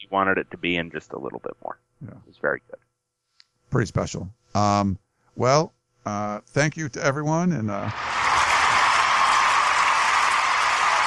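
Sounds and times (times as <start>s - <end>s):
speech: 0.0s - 2.9s, 3.7s - 8.2s
studio audience cheering and applauding: 7.9s - 11.0s.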